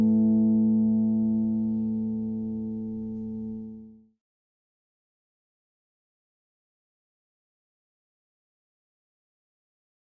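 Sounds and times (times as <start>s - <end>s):
custom solid body electric guitar: 0.0s - 4.0s.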